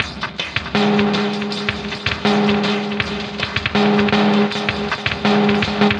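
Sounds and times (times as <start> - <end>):
music loop: 0.0 - 5.9.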